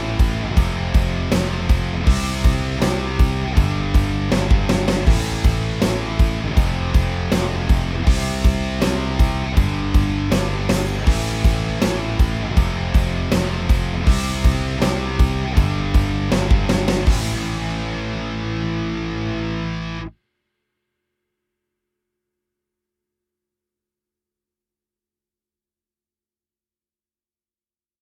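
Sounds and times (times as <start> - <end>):
backing track for lead guitar: 0.0 - 20.2.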